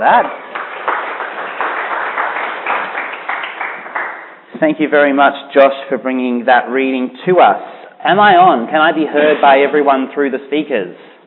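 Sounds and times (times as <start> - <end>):
speech: 0.0 - 0.4, 4.6 - 11.1
audience applause: 0.0 - 4.4.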